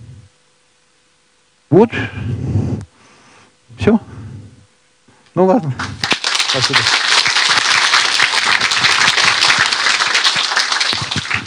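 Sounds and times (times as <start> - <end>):
speech: 1.7 - 2.5, 3.9 - 4.1, 5.4 - 7.1
crowd applause after a lecture: 5.9 - 11.4.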